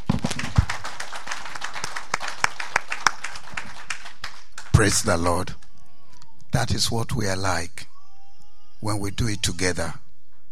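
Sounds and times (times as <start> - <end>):
audience clapping hands: 0.0 - 5.8
speech: 4.8 - 5.6, 6.5 - 7.9, 8.8 - 10.0.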